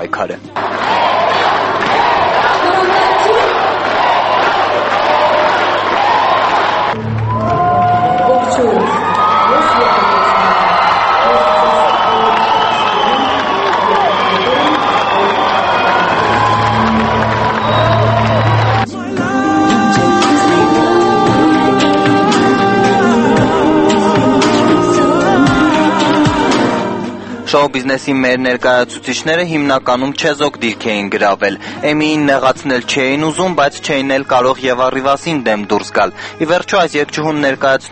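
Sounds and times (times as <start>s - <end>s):
speech: 0.0s - 1.1s, 27.6s - 37.9s
crowd cheering and applauding in a hall: 0.6s - 27.1s.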